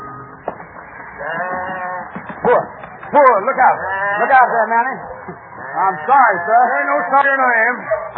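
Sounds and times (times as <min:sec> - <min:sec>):
large flock of sheep bleating on a road: 0:01.2 - 0:02.2, 0:03.5 - 0:08.1
speech: 0:02.5 - 0:08.1.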